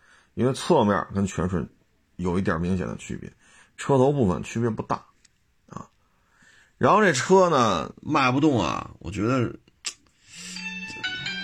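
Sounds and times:
speech: 0.4s - 5.1s, 6.8s - 9.6s
phone ringing: 10.5s - 11.4s.

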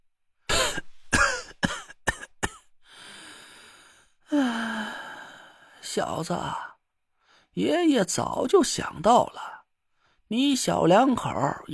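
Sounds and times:
harsh coughs: 0.5s - 2.7s
long heavy sigh: 2.8s - 5.8s
raspy breath: 2.8s - 5.8s
speech: 6.0s - 6.6s, 7.6s - 9.5s, 10.3s - 11.7s.

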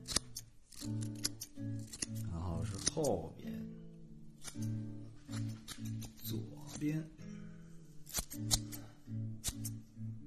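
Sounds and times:
hair-cutting scissors snipping near ear: 0.0s - 3.3s, 4.4s - 7.1s, 8.0s - 9.8s
speech: 3.0s - 3.5s.

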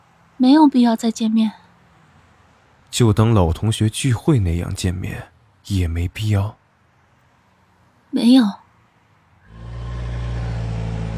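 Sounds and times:
speech: 0.4s - 1.6s, 3.0s - 6.6s, 8.1s - 8.6s
car engine accelerating: 9.4s - 11.1s.

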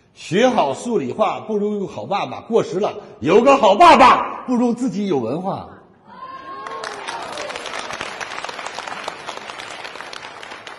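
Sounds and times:
speech: 0.2s - 5.8s
audience applause: 6.5s - 10.7s.

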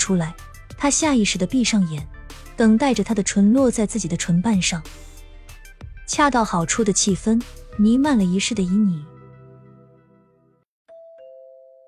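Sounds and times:
speech: 0.0s - 5.1s, 6.1s - 9.1s
room doorbell chime ringing: 10.9s - 11.8s.

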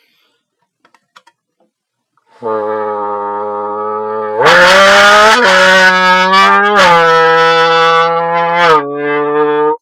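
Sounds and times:
voice through a beer can imitating a car engine roar: 2.5s - 9.8s.

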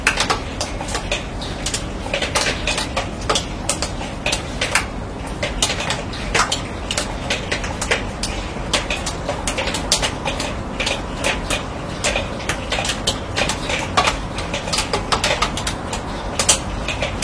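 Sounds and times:
rain dripping on a steel roof: 0.0s - 17.2s.

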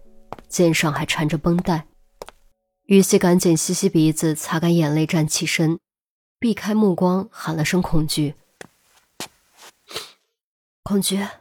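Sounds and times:
footsteps approaching from behind: 0.2s - 0.6s, 1.5s - 2.5s, 8.4s - 10.2s
speech: 0.5s - 1.9s, 2.9s - 8.4s, 10.9s - 11.3s.

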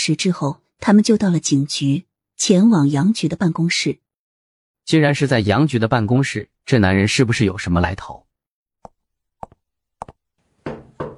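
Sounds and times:
speech: 0.0s - 4.0s, 4.9s - 8.2s
knocking on a door: 10.6s - 11.1s.

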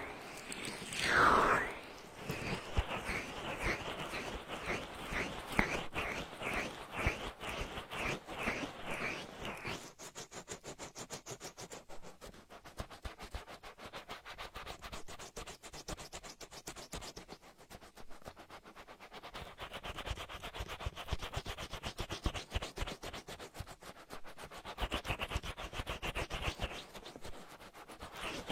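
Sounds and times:
louder whoosh: 0.0s - 3.3s
vigorous oil ear rubbing: 0.0s - 28.5s.

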